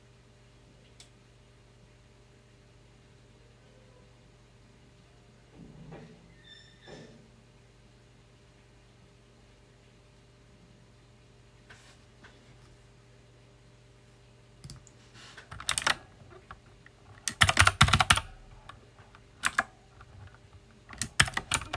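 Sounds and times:
loud mechanical keyboard keystrokes: 15.5 - 21.7.

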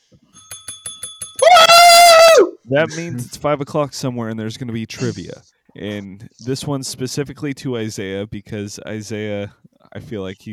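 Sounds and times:
small bell ringing: 0.3 - 1.8
speech: 2.7 - 10.5.

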